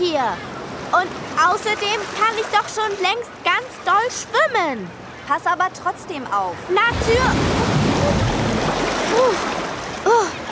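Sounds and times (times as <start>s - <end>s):
speech: 0.1s - 8.2s, 9.2s - 10.4s
big ocean wave breaking: 6.9s - 10.1s.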